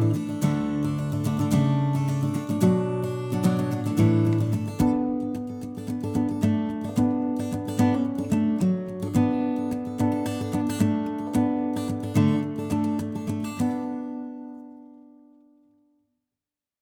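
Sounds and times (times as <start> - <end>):
fast guitar playing: 0.0 - 13.3.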